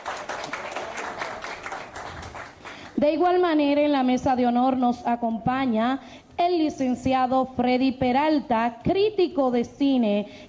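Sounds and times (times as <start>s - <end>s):
applause for a guest at a ceremony: 0.0s - 3.0s
speech: 3.0s - 10.4s.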